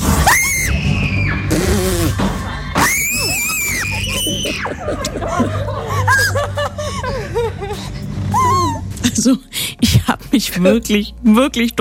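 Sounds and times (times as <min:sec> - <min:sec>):
people screaming inside a horror attraction maze: 0:00.0 - 0:05.1
nervous laughter in a horror attraction maze: 0:02.0 - 0:09.1
speech: 0:09.2 - 0:09.6, 0:10.4 - 0:11.7.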